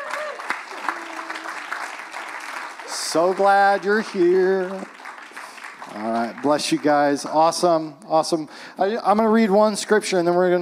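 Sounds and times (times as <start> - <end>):
audience applause: 0.0 - 7.8
speech: 3.1 - 5.0, 5.9 - 10.5.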